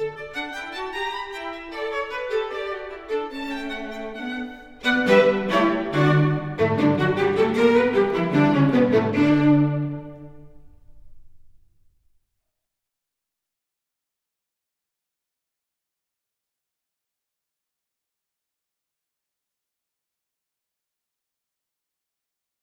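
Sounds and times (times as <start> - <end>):
string quartet playing molto allegro in D: 0.0 - 11.6.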